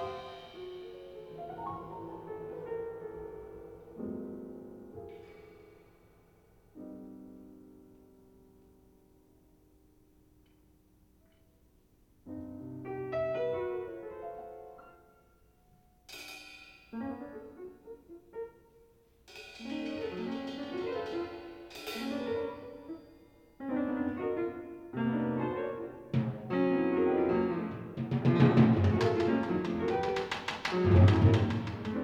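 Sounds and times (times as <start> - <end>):
percussion in a duet with piano: 0.0 - 2.7, 16.1 - 17.2, 19.3 - 23.6, 26.2 - 32.0
piano in a duet with percussion: 0.0 - 32.0.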